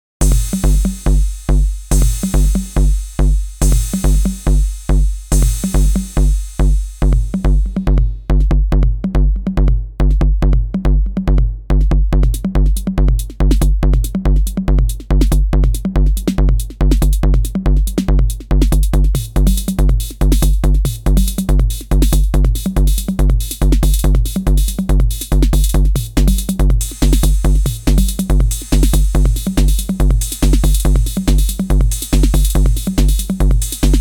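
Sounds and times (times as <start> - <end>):
Roland TR-606 drum machine: 0.2 - 33.9.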